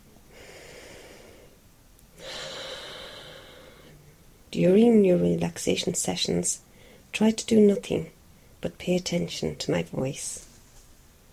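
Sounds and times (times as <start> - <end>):
slow deep breath during a guided relaxation session: 0.3 - 1.6, 2.2 - 4.1, 6.7 - 7.1
speech: 4.5 - 10.5.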